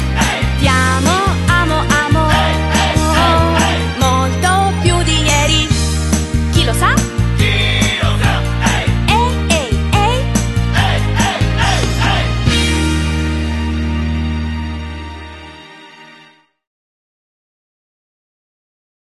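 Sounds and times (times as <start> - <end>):
Italian fan club song: 0.0 - 15.1.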